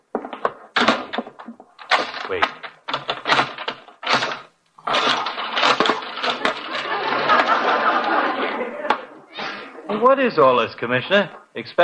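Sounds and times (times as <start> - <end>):
front door being unchained, unbolted and unlocked: 0.8 - 7.0
speech: 2.3 - 2.6, 10.0 - 11.8
laughter: 4.8 - 10.1.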